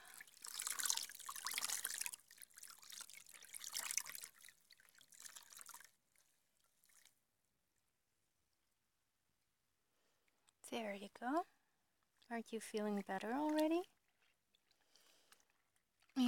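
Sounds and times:
water splashing while a mother washes a child's legs: 0.0s - 7.2s, 12.2s - 16.2s
speech: 10.8s - 11.6s, 12.3s - 13.9s.

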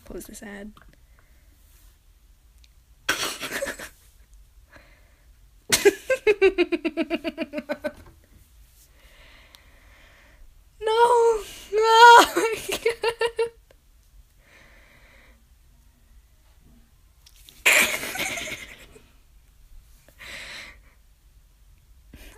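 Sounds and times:
person laughing: 3.2s - 4.0s, 5.7s - 8.0s, 12.0s - 13.5s, 17.7s - 19.0s
person cheering: 10.9s - 12.5s.

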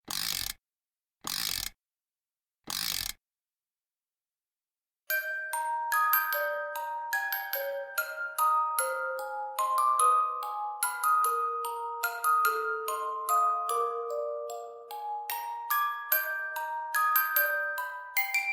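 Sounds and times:
lullaby music: 5.1s - 18.5s.

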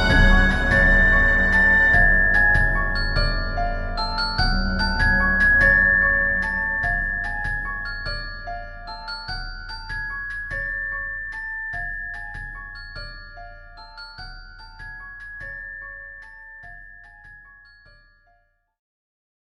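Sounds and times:
waltz music: 0.0s - 9.2s.

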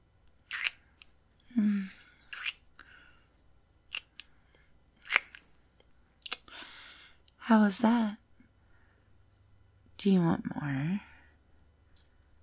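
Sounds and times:
soft wet kissing and lip-smacking: 0.4s - 1.1s, 2.2s - 2.7s, 3.9s - 4.3s, 5.0s - 5.5s, 6.2s - 6.5s
speech: 7.5s - 8.2s, 10.0s - 11.1s.

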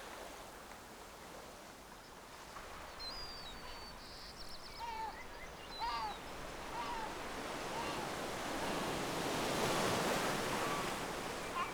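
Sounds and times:
beach ambience: 2.6s - 11.7s.

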